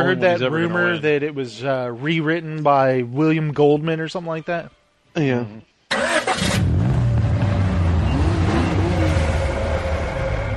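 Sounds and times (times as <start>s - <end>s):
speech: 0.0s - 6.6s
car engine revving: 5.9s - 10.5s.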